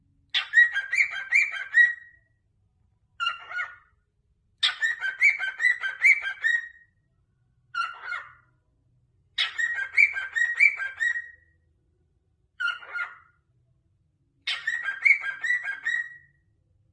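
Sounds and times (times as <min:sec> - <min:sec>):
cockatiel whistled song: 0:00.3 - 0:02.4, 0:03.2 - 0:03.9, 0:04.6 - 0:07.0, 0:07.7 - 0:08.5, 0:09.4 - 0:11.6, 0:12.6 - 0:13.4, 0:14.4 - 0:16.5.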